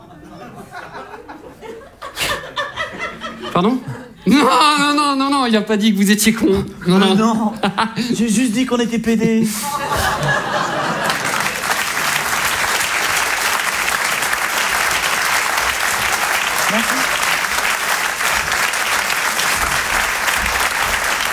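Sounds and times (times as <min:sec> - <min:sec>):
laughter: 0:00.0 - 0:05.3, 0:06.5 - 0:08.6, 0:09.2 - 0:21.3
speech: 0:03.6 - 0:10.3
audience applauding in a theatre: 0:09.7 - 0:21.3.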